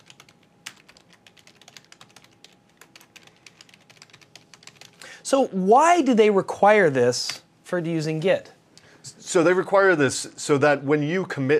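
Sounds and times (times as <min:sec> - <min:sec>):
computer keyboard typing a Git command: 0:00.0 - 0:05.0
speech: 0:05.3 - 0:08.5, 0:09.3 - 0:11.5.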